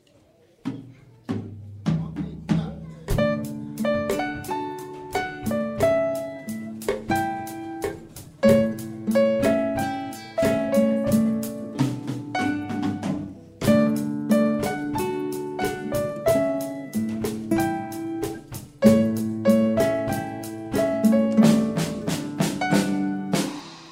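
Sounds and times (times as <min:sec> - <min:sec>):
samba song: 0:00.9 - 0:23.9.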